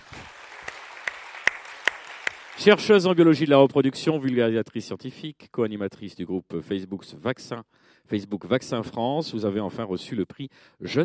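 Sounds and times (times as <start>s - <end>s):
audience applause: 0.0s - 3.3s
speech: 2.6s - 11.0s.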